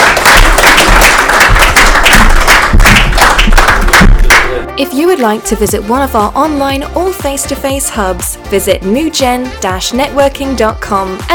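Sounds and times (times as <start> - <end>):
audience applause: 0.0 - 4.6
speech: 5.2 - 11.3.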